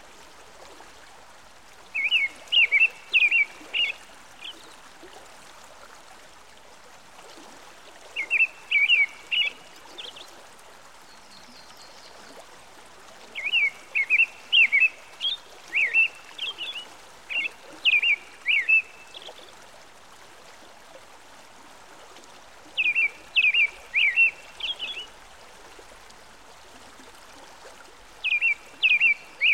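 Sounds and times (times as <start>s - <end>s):
American robin song by a stream: 1.9s - 4.8s, 8.2s - 10.3s, 13.4s - 19.5s, 22.8s - 25.2s, 28.2s - 29.5s.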